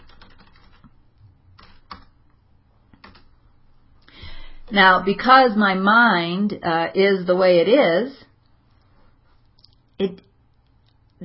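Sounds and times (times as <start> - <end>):
quiet typing on a keyboard: 0.0 - 1.0, 1.6 - 2.2, 2.9 - 3.3
speech: 4.7 - 8.2.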